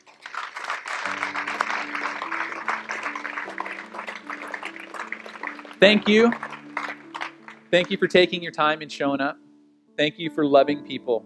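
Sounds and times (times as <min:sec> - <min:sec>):
audience applause: 0:00.0 - 0:08.1
speech: 0:05.8 - 0:06.4, 0:07.7 - 0:09.4, 0:10.0 - 0:11.2.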